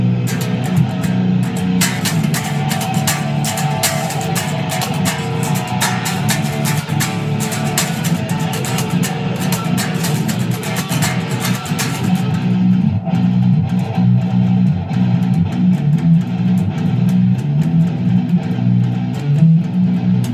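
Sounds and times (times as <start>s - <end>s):
seven-string guitar: 0.0s - 20.3s.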